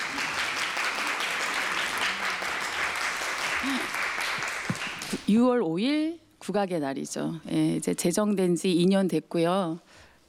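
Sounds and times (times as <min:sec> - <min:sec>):
audience applause: 0:00.0 - 0:05.2
speech: 0:05.3 - 0:10.1.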